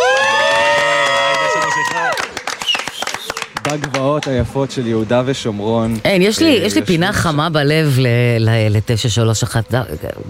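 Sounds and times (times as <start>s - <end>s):
crowd clapping and cheering: 0.0s - 4.4s
speech: 3.7s - 10.2s.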